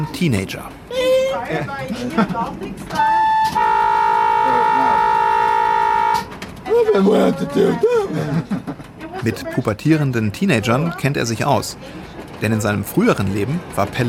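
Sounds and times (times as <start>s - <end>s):
speech: 0.0s - 5.0s, 6.7s - 14.0s
laughter: 1.2s - 2.7s, 7.5s - 9.4s
train horn blast: 2.9s - 6.5s.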